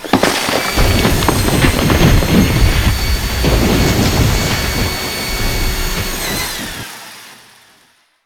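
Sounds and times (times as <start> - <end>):
drill: 0.0 - 8.2.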